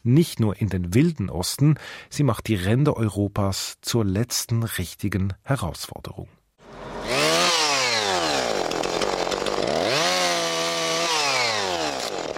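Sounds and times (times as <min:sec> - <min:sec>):
speech: 0:00.0 - 0:06.4
chainsaw cutting wood: 0:06.6 - 0:12.3.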